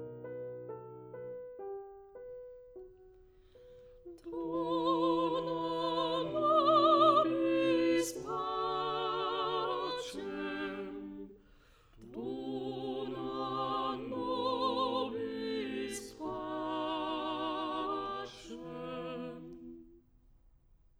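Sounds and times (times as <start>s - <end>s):
tenor singing: 4.1s - 11.3s, 12.0s - 19.8s.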